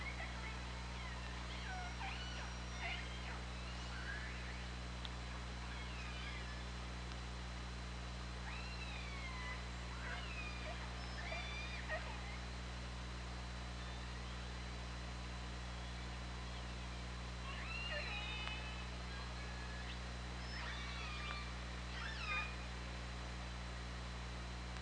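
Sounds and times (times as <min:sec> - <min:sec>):
orca harmonic squeal calls: 0:00.0 - 0:04.7, 0:08.4 - 0:12.4, 0:17.4 - 0:22.7
steady low underwater hum: 0:00.0 - 0:24.8.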